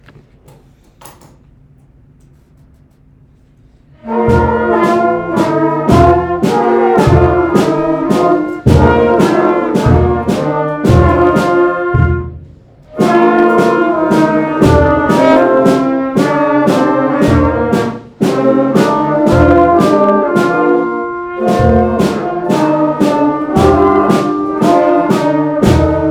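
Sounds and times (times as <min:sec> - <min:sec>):
military march music: 0:03.6 - 0:26.0.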